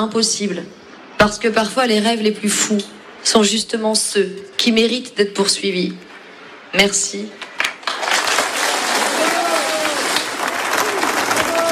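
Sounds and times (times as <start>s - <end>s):
speech: 0.0s - 6.1s, 6.7s - 7.4s
crowd cheering and applauding: 7.8s - 11.6s.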